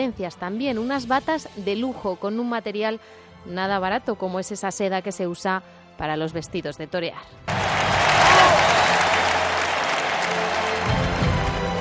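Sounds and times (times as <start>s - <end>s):
speech: 0.0s - 7.7s
crowd applause: 7.5s - 11.7s.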